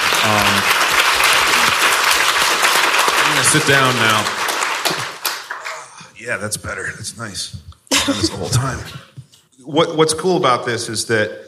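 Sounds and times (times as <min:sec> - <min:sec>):
audience round of applause: 0:00.0 - 0:06.0
speech: 0:00.2 - 0:00.8, 0:03.5 - 0:05.0, 0:06.2 - 0:11.4
laughter: 0:06.7 - 0:09.3.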